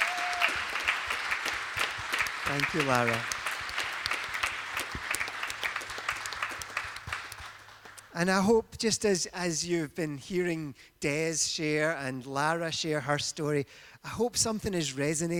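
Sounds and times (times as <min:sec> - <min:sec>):
audience applause: 0:00.0 - 0:08.1
speech: 0:02.5 - 0:03.3, 0:08.2 - 0:15.3.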